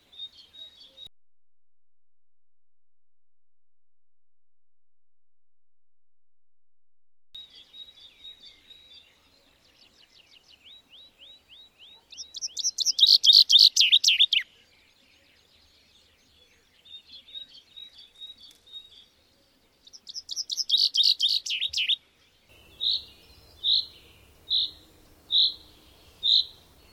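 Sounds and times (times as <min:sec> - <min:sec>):
bird chirping: 0:07.4 - 0:26.9.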